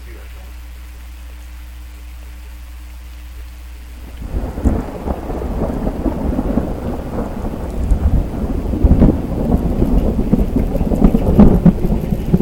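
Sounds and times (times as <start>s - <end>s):
thunderstorm: 4.0s - 12.4s.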